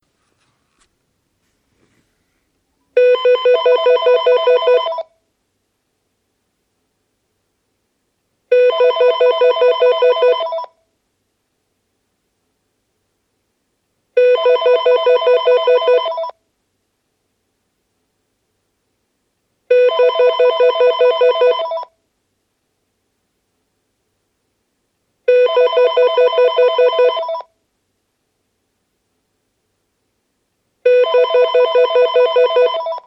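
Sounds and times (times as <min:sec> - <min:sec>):
phone ringing: 0:03.0 - 0:05.1, 0:08.5 - 0:10.8, 0:14.2 - 0:16.4, 0:19.7 - 0:21.9, 0:25.3 - 0:27.5, 0:30.8 - 0:33.0.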